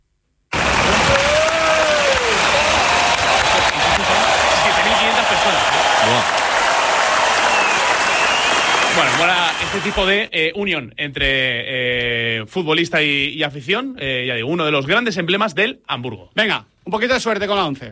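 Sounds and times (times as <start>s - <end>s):
stadium crowd ovation: 0.5s - 10.1s
speech: 9.8s - 17.8s.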